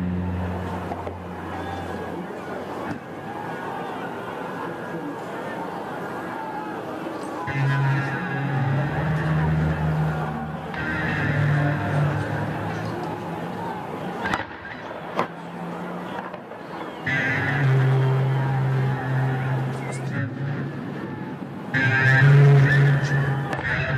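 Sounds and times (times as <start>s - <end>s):
protest crowd murmur in Belarus: 0.0s - 23.9s.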